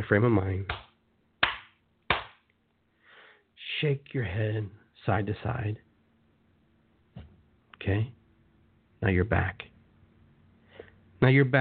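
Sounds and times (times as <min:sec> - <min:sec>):
speech: 0:00.0 - 0:00.8, 0:03.8 - 0:05.9, 0:07.8 - 0:08.2, 0:09.0 - 0:09.7, 0:11.2 - 0:11.5
hand claps as a cue to end a guided grounding exercise: 0:00.7 - 0:02.5.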